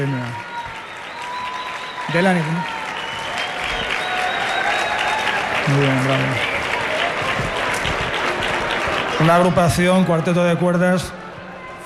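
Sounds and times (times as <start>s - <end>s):
speech: 0.0s - 0.5s, 2.1s - 2.8s, 5.7s - 6.6s, 9.2s - 11.2s
audience applause for a string quartet: 0.0s - 11.1s.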